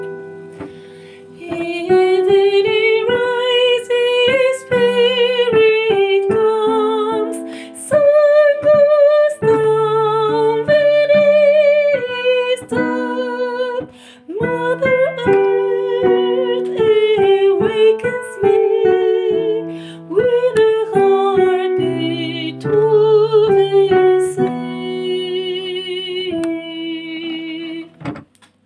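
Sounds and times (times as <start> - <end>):
sopranos singing: 1.3 - 28.1.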